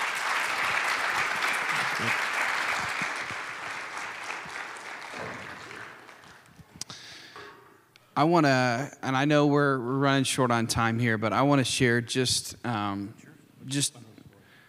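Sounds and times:
audience applause: 0.0s - 6.6s
speech: 2.0s - 2.2s, 8.2s - 14.0s.

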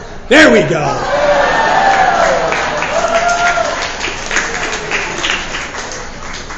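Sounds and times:
speech: 0.3s - 1.2s
cheers and high whoops: 1.0s - 5.1s
crowd applause: 1.0s - 6.5s.

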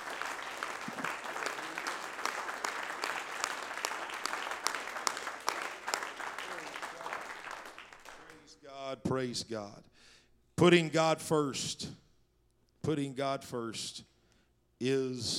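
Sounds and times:
audience clapping hands: 0.0s - 8.6s
speech: 9.1s - 9.9s, 10.6s - 12.0s, 12.8s - 14.1s, 14.8s - 15.3s.

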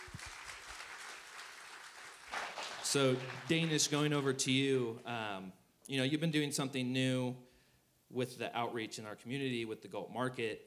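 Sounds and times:
audience applause: 0.0s - 4.3s
speech: 2.9s - 7.5s, 8.1s - 10.6s.

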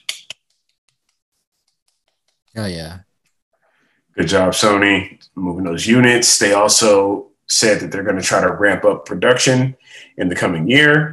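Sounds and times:
hand clapping: 0.0s - 2.6s
speech: 2.6s - 3.1s, 4.2s - 11.1s.

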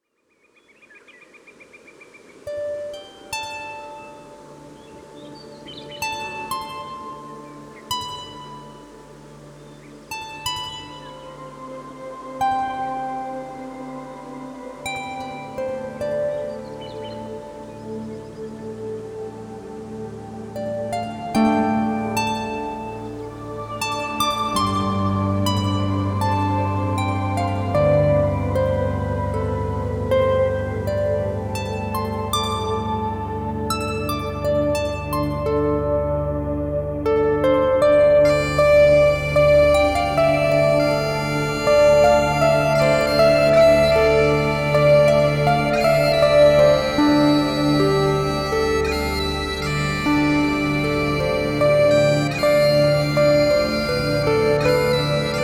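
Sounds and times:
Celtic forest music: 0.0s - 55.4s.

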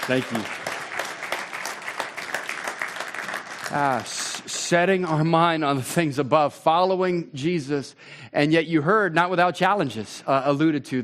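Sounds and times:
audience applause: 0.0s - 5.1s
speech: 0.1s - 0.6s, 3.7s - 11.0s.

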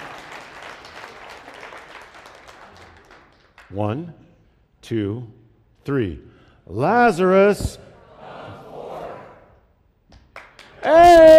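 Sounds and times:
audience applause for volunteer: 0.0s - 3.5s
speech: 3.7s - 4.3s, 4.9s - 7.9s.

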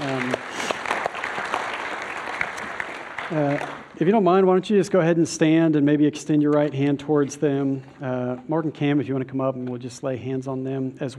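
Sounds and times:
audience applause: 0.0s - 4.0s
speech: 3.3s - 11.1s.

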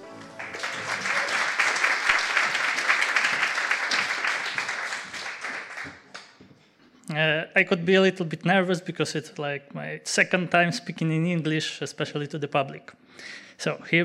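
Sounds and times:
audience applause welcoming a speaker: 0.0s - 6.4s
speech: 7.1s - 14.0s.

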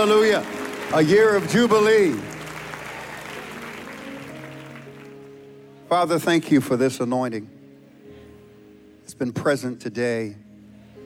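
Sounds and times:
speech: 0.0s - 2.3s, 5.9s - 7.5s, 9.1s - 10.4s
audience applause and cheering: 0.0s - 5.5s.

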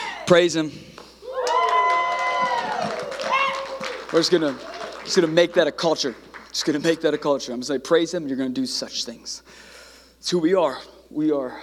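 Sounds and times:
speech: 0.3s - 1.0s, 4.1s - 11.6s
church audience shouting and cheering: 1.2s - 5.2s.

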